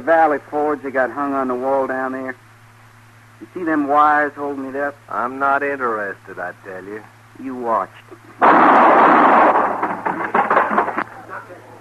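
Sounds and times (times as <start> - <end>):
speech: 0.0 - 2.4, 3.4 - 9.3
noise: 0.0 - 11.7
gunshots during target shooting at picture wires: 8.4 - 10.1.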